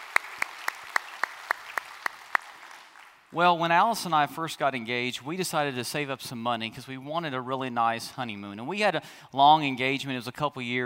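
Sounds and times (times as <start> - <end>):
hand claps welcoming a church congregation: 0.0 - 3.2
faint hiss: 0.0 - 10.8
speech: 3.3 - 10.8.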